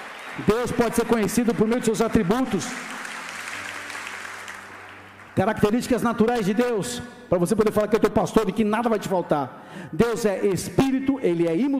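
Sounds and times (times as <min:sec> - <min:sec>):
audience applause: 0:00.0 - 0:05.6
speech: 0:00.4 - 0:03.0, 0:05.4 - 0:11.7.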